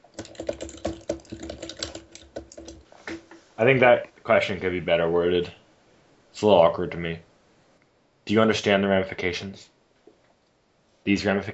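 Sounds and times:
typing on a computer keyboard: 0:00.0 - 0:02.8
speech: 0:03.6 - 0:05.6, 0:06.4 - 0:07.3, 0:08.3 - 0:09.7, 0:11.1 - 0:11.5.

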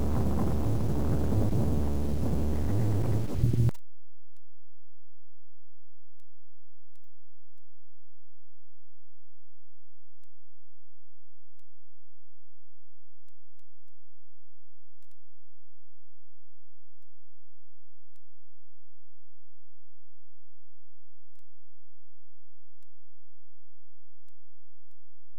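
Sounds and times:
weird noises: 0:00.0 - 0:03.8.

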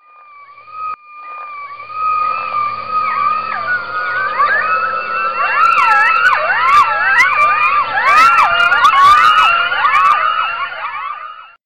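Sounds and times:
coyote calling: 0:01.2 - 0:11.2.

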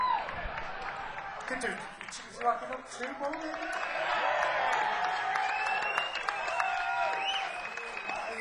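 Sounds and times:
people whooping and cheering: 0:00.0 - 0:01.5, 0:03.4 - 0:08.3
audience clapping: 0:00.0 - 0:08.3
speech: 0:01.5 - 0:04.3.

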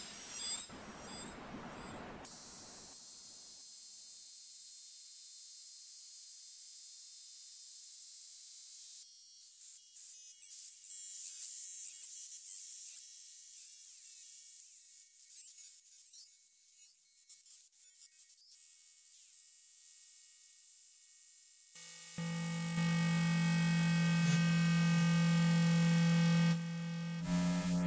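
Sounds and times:
low soundscape: 0:22.2 - 0:27.8.

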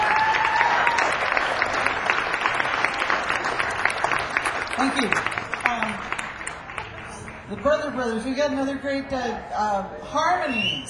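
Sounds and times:
audience applause at a live music event: 0:00.0 - 0:07.7
speech: 0:04.8 - 0:05.4, 0:07.5 - 0:10.8.

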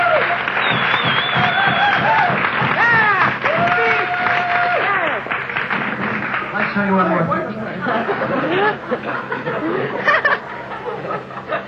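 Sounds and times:
audience applause: 0:00.0 - 0:08.8
crowd noise: 0:00.0 - 0:11.6
whistled or sung tones: 0:00.6 - 0:02.0
laughter: 0:07.3 - 0:11.6
speech: 0:08.2 - 0:10.0.

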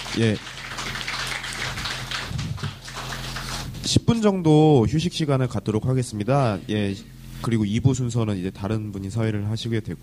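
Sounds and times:
audience applause: 0:00.0 - 0:03.7
speech: 0:00.2 - 0:00.6, 0:03.9 - 0:10.0.

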